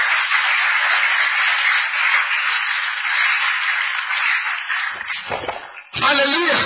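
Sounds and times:
audience clapping hands: 0:00.0 - 0:06.5.

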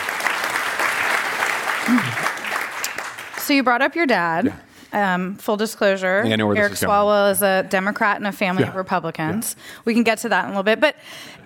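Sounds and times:
audience applause: 0:00.0 - 0:03.5
speech: 0:03.5 - 0:11.4.

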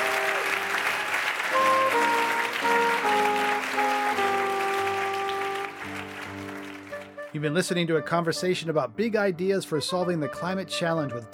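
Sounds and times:
audience applause: 0:00.0 - 0:07.3
speech: 0:07.4 - 0:11.3.

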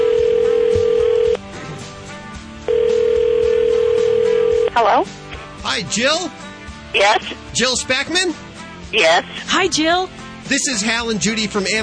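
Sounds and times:
telephone ringback tone: 0:00.0 - 0:01.4, 0:02.7 - 0:04.7
speech: 0:04.8 - 0:11.8.

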